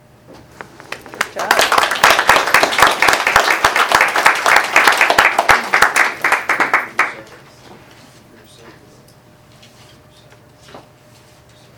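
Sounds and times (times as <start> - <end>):
audience applause for school volunteers at Madison Plains schools: 0.9 - 7.2.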